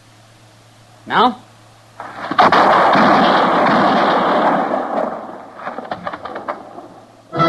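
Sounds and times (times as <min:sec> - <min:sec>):
speech: 0:01.0 - 0:01.4
gunshots in a western radio drama: 0:02.0 - 0:07.3.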